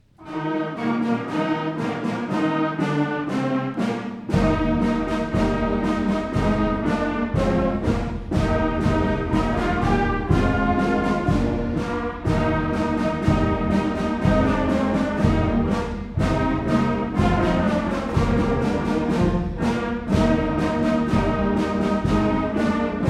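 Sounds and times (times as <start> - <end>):
6th grade band playing a regal march at a concert: 0.0 - 23.0.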